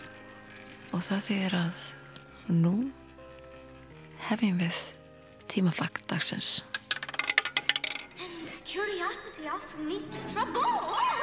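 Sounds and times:
speech: 0.9 - 3.0, 4.3 - 6.8, 9.6 - 11.1
roulette wheel spinning sound effect: 6.4 - 8.3.

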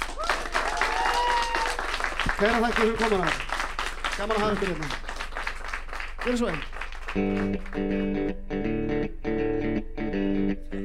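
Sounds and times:
audience applause: 0.0 - 8.0
speech: 2.4 - 3.5, 4.2 - 5.0, 6.2 - 9.5.

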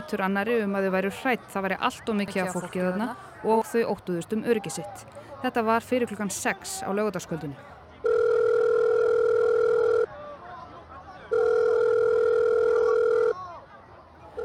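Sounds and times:
speech: 0.0 - 7.8
murmur of chatter: 0.0 - 14.4
telephone ringing tone: 8.0 - 10.1, 11.3 - 13.4.

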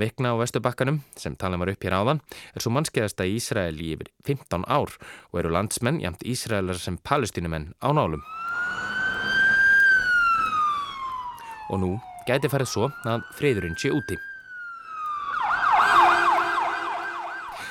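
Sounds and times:
speech: 0.0 - 8.6, 11.7 - 14.3
air raid warning sirens wailing in Israel: 8.1 - 17.6.

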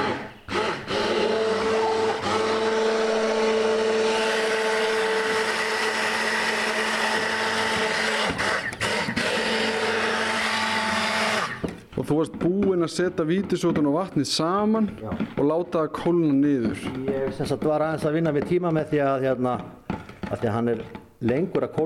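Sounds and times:
immersion blender running: 0.0 - 11.8
speech: 12.1 - 21.8.

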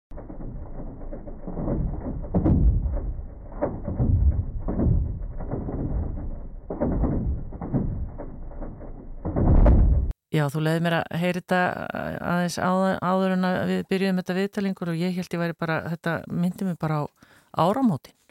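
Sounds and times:
recorded earthquake rumbling of the ground: 0.1 - 10.2
speech: 10.3 - 18.2.

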